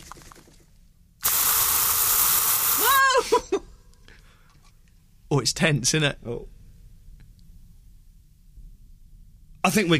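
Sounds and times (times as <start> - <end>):
aerosol spray from a gift set hissing: 1.2 - 3.0
speech: 5.3 - 6.6, 9.7 - 9.9.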